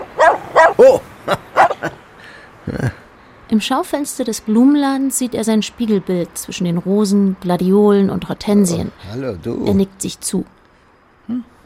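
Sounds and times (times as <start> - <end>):
dog barking: 0.0 - 1.9
speech: 0.8 - 1.5, 3.6 - 10.6, 11.3 - 11.5.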